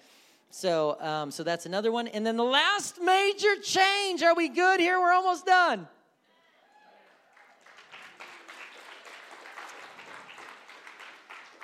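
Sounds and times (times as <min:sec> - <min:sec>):
speech: 0:00.6 - 0:06.0
audience applause: 0:07.0 - 0:11.6.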